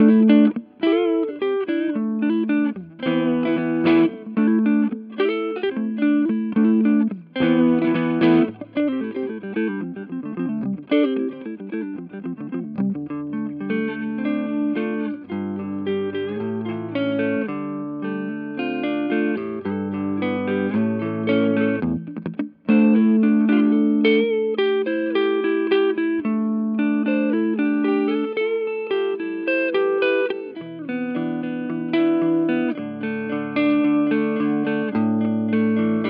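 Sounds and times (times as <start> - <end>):
Hagstrom clean electric guitar: 0.0 - 36.0.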